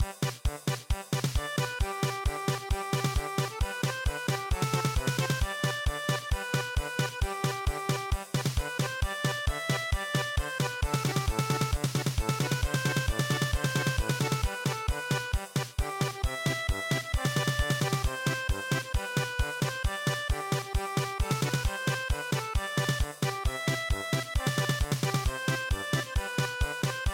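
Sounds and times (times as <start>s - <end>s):
German polka march: 0.0s - 27.1s.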